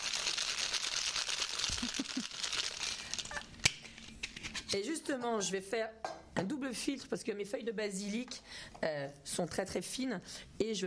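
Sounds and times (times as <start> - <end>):
ice rattling in a cocktail shaker: 0.0 - 3.4
speech: 4.7 - 10.8.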